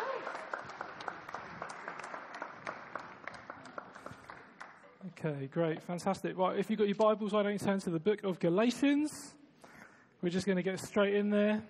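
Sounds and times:
audience applause: 0.0s - 5.0s
speech: 5.2s - 9.4s, 10.2s - 11.6s.

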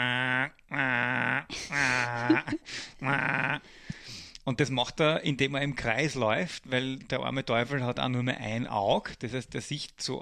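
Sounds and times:
person imitating swan goose trumpeting: 0.0s - 3.6s
speech: 2.3s - 3.8s, 4.5s - 10.1s.

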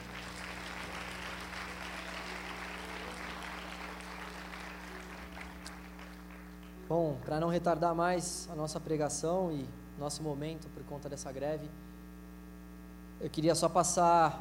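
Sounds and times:
audience applauding: 0.0s - 6.9s
low constant hum: 0.0s - 14.4s
speech: 6.9s - 11.9s, 13.2s - 14.4s.

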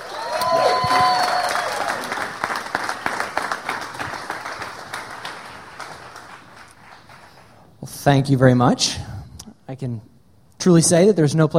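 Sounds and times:
audience cheering and applauding: 0.0s - 7.5s
speech: 8.0s - 9.1s, 9.8s - 11.5s.

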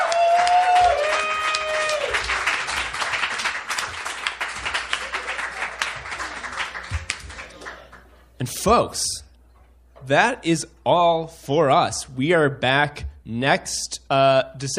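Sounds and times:
whoops and cheers: 0.0s - 2.3s
audience applause: 0.0s - 8.1s
speech: 8.6s - 9.2s, 10.1s - 14.7s.

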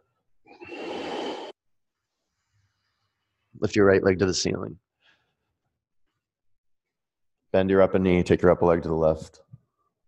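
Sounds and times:
long exhale during yoga stretching: 0.5s - 1.6s
speech: 3.6s - 4.8s, 7.6s - 9.5s.

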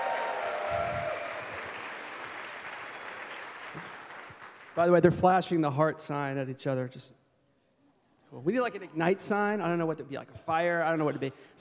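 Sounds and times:
audience applause: 0.0s - 4.8s
speech: 4.8s - 7.2s, 8.3s - 11.5s.

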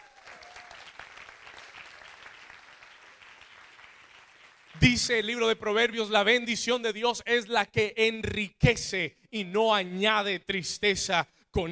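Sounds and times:
audience applauding: 0.0s - 4.8s
speech: 4.8s - 11.7s.

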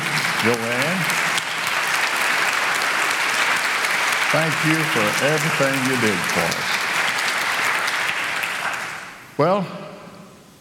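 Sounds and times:
audience applause: 0.0s - 9.2s
speech: 0.4s - 1.2s, 4.3s - 6.8s, 9.4s - 9.8s.

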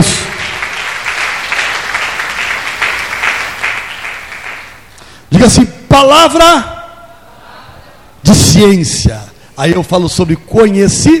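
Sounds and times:
audience applause: 0.0s - 4.8s
speech: 5.4s - 6.7s, 8.3s - 11.1s.

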